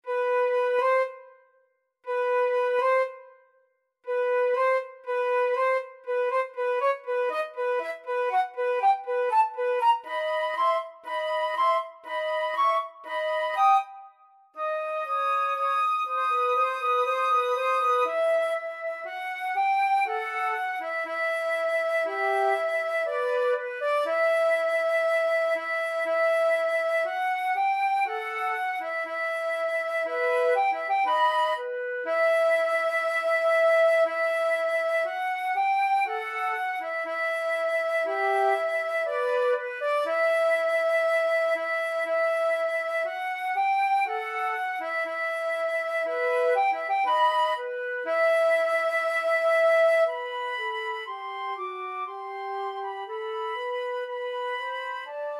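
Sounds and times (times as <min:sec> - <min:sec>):
flute duet: 0:00.0 - 0:55.3.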